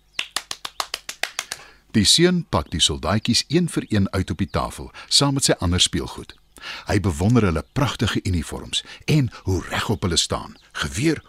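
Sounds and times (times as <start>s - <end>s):
hands clapping: 0.2s - 1.7s
speech: 2.0s - 11.2s.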